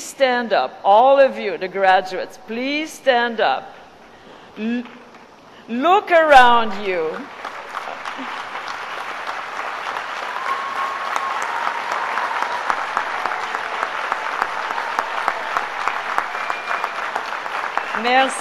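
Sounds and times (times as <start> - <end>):
speech: 0.2 - 3.8, 4.6 - 5.0, 5.7 - 7.4, 8.2 - 8.4, 18.0 - 18.3
large audience clapping for graduates: 6.8 - 18.3
faint whistles and cheers: 8.7 - 18.3.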